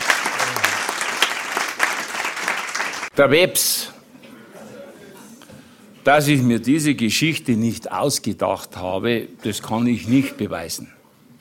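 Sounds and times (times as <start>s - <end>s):
audience applause: 0.0s - 3.1s
speech: 3.2s - 4.0s, 6.0s - 11.0s.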